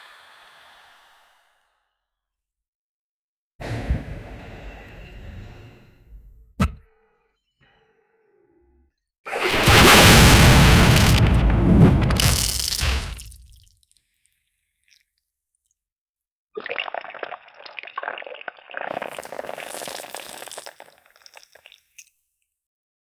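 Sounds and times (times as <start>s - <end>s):
explosive bursting diarrhea: 6.4s - 6.8s, 9.4s - 13.6s.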